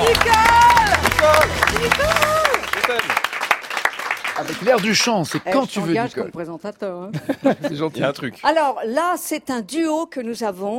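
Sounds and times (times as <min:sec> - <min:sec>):
people cheering and calling: 0:00.0 - 0:05.4
audience clapping for a performer: 0:00.0 - 0:06.0
speech: 0:04.4 - 0:10.7
laughter: 0:07.1 - 0:08.1.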